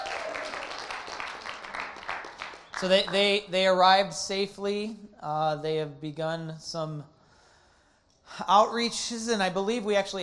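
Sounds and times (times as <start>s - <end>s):
audience clapping at a gathering: 0.0s - 3.4s
speech: 2.8s - 7.2s, 8.3s - 10.2s.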